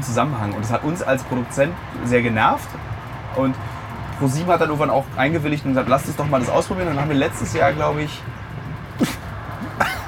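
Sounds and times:
speech: 0:00.1 - 0:09.2
person cough-sneezing beer through nose: 0:09.0 - 0:10.0.

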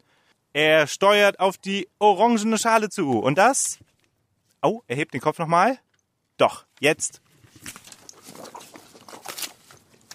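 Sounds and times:
speech: 0:00.5 - 0:03.8, 0:04.6 - 0:05.8, 0:06.4 - 0:07.8
animal biting and chewing an apple: 0:07.4 - 0:10.1.

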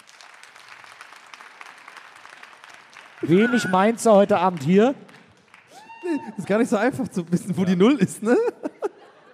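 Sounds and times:
sparse audience applause: 0:00.0 - 0:07.3
laughter: 0:03.2 - 0:04.3, 0:06.0 - 0:09.3
speech: 0:03.2 - 0:05.1, 0:06.1 - 0:08.6.

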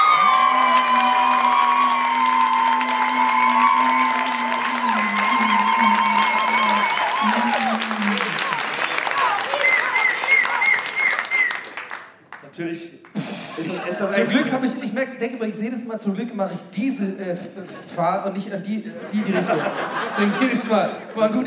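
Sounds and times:
live audience applause: 0:00.0 - 0:12.5
laughter: 0:04.3 - 0:10.7, 0:13.2 - 0:14.8, 0:17.4 - 0:21.4
speech: 0:14.0 - 0:21.4.

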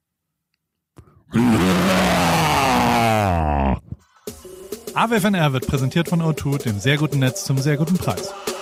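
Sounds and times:
breathy sound: 0:01.0 - 0:04.0
person imitating a white tiger roar: 0:01.3 - 0:04.0
speech: 0:05.0 - 0:08.5.

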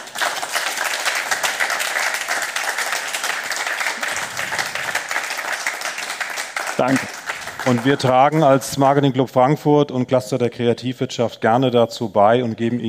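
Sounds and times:
audience applause: 0:00.0 - 0:08.6
speech: 0:06.8 - 0:12.8.

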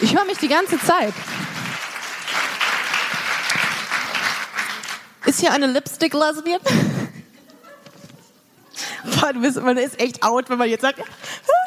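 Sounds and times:
speech: 0:00.0 - 0:01.4, 0:05.3 - 0:06.9, 0:09.1 - 0:11.6
audience applause: 0:00.0 - 0:05.3
laughter: 0:06.8 - 0:09.0.

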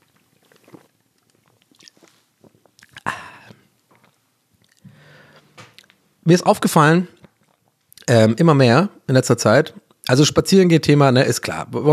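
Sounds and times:
person sipping a drink, slurping and swallowing: 0:00.0 - 0:04.9, 0:07.2 - 0:08.1
speech: 0:06.3 - 0:07.2, 0:08.1 - 0:11.9.

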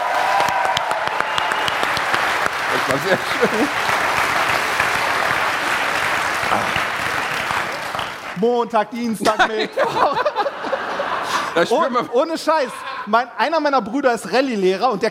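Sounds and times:
audience applause: 0:00.0 - 0:08.4
laughter: 0:02.7 - 0:04.8, 0:09.2 - 0:13.4
speech: 0:02.8 - 0:04.0, 0:06.5 - 0:06.9, 0:08.4 - 0:10.4, 0:11.6 - 0:15.0.

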